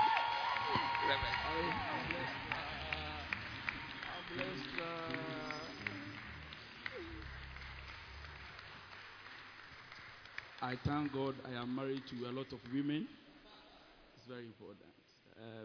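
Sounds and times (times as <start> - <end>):
audience shouting in welcome: 0.0 - 10.0
audience clapping in welcome: 0.0 - 13.2
speech: 1.1 - 2.6, 10.6 - 13.2, 14.3 - 15.6.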